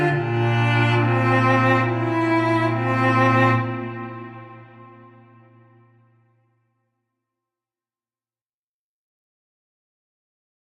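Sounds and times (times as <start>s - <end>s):
solo cello playing: 0.0s - 6.1s.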